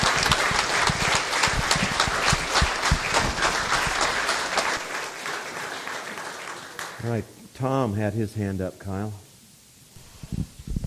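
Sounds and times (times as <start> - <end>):
audience applauding: 0.0 - 7.2
speech: 7.1 - 9.2.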